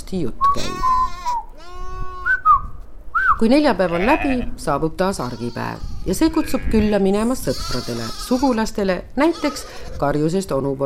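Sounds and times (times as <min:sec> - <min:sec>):
speech: 0:00.1 - 0:00.9, 0:03.4 - 0:10.8
sheep and goats bleating at a market: 0:00.8 - 0:02.3, 0:03.8 - 0:04.6, 0:05.2 - 0:10.1.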